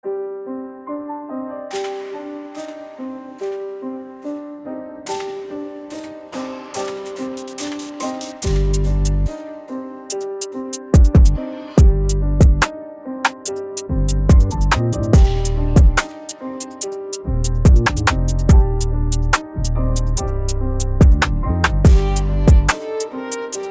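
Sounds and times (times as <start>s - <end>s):
drill beat: 5.1s - 9.4s, 10.1s - 12.7s, 13.3s - 19.4s, 20.0s - 23.6s.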